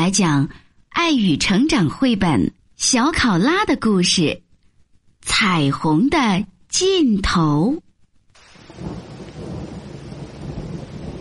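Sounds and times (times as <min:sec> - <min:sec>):
speech: 0:00.0 - 0:04.4, 0:05.2 - 0:07.8
rain falling through tree leaves: 0:08.3 - 0:11.1.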